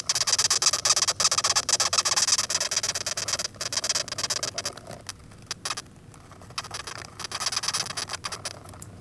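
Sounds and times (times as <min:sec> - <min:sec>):
velvet ant squeaking: 0:00.0 - 0:08.7.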